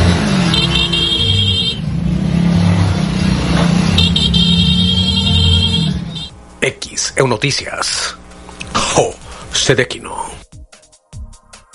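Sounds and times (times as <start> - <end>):
motorcycle engines rumbling in a funeral procession: 0.0 - 6.5
speech: 7.2 - 8.2, 9.0 - 10.6.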